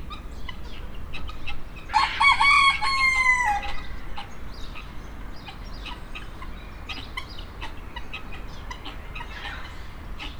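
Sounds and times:
rooster crowing in the farmyard section of a zoo in Nyíregyháza Hungary: 1.9s - 4.0s.

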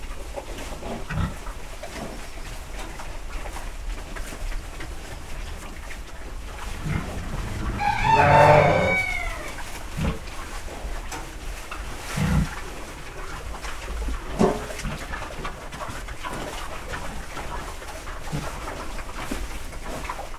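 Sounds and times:
pigs eating in a stable: 0.2s - 20.2s
rooster in a farmyard: 6.8s - 9.6s
sheep in a farmyard: 6.8s - 9.6s.

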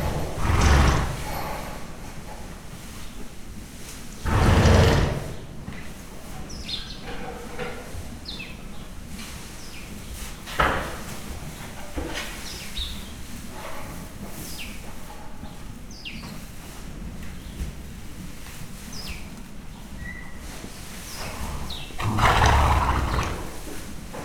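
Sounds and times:
foal snorting while drinking from a self-waterer: 0.2s - 1.5s, 4.2s - 5.6s, 21.2s - 23.8s.

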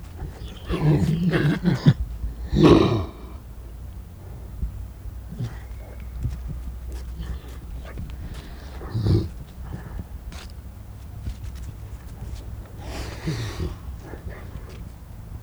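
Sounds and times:
captive wolf giving a low rough growl: 0.0s - 3.5s, 5.2s - 10.2s, 12.7s - 14.9s.

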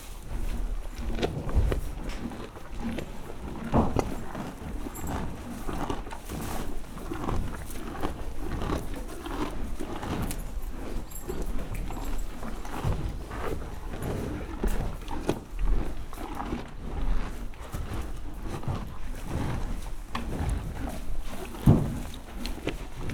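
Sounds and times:
horses eating in a stable in a farmyard: 0.0s - 23.1s.

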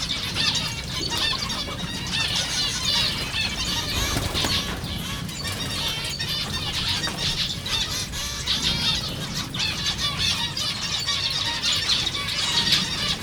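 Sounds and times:
flock of captive zebra finches chattering at a zoo: 0.0s - 13.2s.

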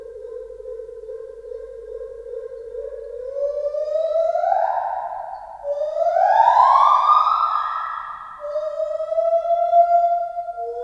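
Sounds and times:
white-handed gibbon song of swooping hoots: 3.2s - 10.8s.

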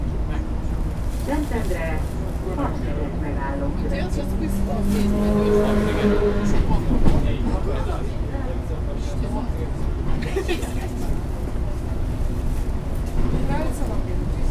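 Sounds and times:
passengers talking on a long-distance bus: 0.0s - 14.4s
louder vehicle passing: 2.8s - 7.4s.

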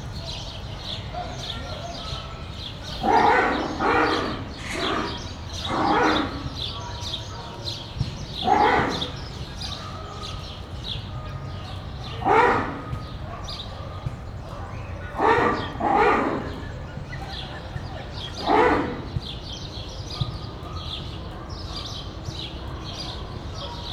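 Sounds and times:
ruffed lemur calls outside the monkey house at Debrecen Zoo: 2.7s - 7.1s, 8.2s - 9.8s, 11.8s - 13.2s, 14.8s - 19.4s.

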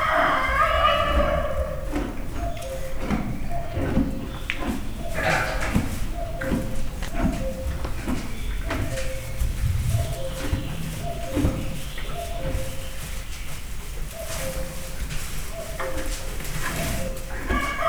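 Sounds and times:
rooster crowing: 0.0s - 1.8s, 17.4s - 17.8s
Hungarian native donkey braying in a zoo: 0.0s - 13.2s, 15.5s - 17.8s
animals eating in a stable: 0.0s - 17.8s
cuckoo calling: 0.0s - 17.8s
turkey gobbling: 0.0s - 17.8s.

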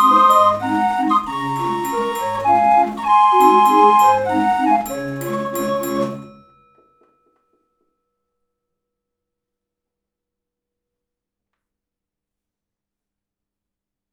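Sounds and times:
Austrian barrel organ from 1876 with 26 hangers playing 20 melodies: 0.0s - 6.3s.

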